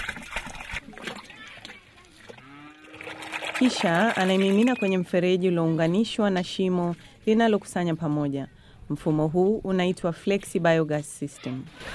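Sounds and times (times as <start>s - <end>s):
cow manure being mixed with water by hand on a farm in Rwanda: 0.0s - 5.1s
cow mooing: 2.4s - 3.5s
speech: 3.6s - 11.9s.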